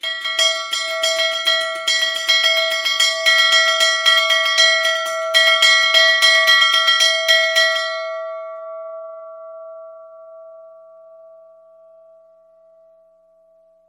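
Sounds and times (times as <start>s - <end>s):
bell ringing: 0.0s - 9.2s.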